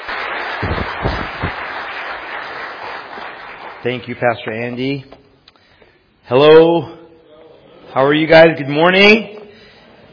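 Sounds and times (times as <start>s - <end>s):
audience applause welcoming a pastor at a church service: 0.0s - 4.1s
speech: 3.8s - 5.2s, 6.3s - 7.0s, 7.9s - 9.4s.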